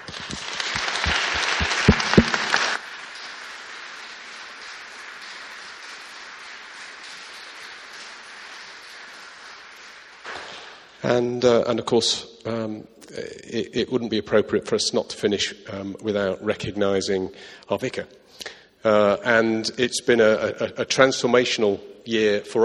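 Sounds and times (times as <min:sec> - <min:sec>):
big round of applause: 0:00.0 - 0:11.0
speech: 0:11.1 - 0:22.6.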